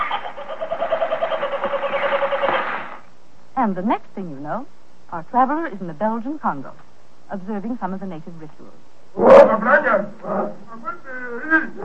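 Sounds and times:
kookaburra laughing call: 0.0s - 3.0s, 9.5s - 11.8s
speech: 3.6s - 11.8s.

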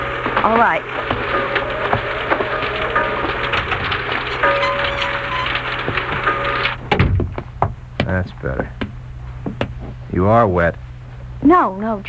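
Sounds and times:
rain starting to fall: 0.0s - 12.0s
speech: 0.4s - 1.2s, 8.1s - 8.7s, 10.1s - 10.8s, 11.4s - 12.0s.

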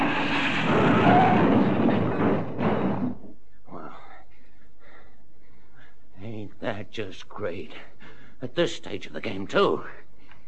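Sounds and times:
car crashing into rocks: 0.0s - 3.2s
speech: 6.9s - 10.0s.

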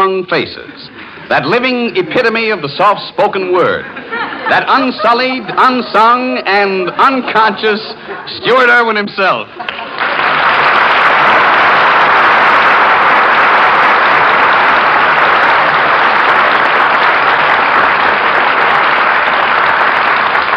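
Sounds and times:
speech: 0.2s - 10.0s
laughter: 3.6s - 8.6s, 9.4s - 10.6s
audience applause: 9.6s - 20.5s.

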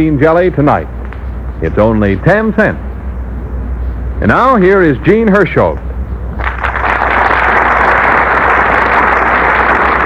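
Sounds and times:
speech: 0.0s - 1.0s, 1.6s - 2.8s, 4.2s - 5.8s
studio audience applauding: 6.4s - 10.0s.

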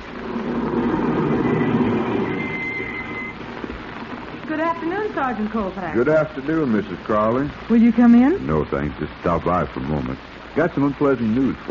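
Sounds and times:
car driving up: 0.0s - 3.7s
speech: 5.1s - 11.7s.

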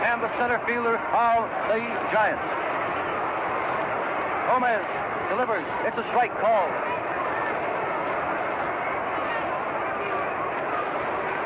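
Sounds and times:
baseball stadium crowd rumble: 0.0s - 11.4s
speech: 0.2s - 2.8s, 4.5s - 6.9s.

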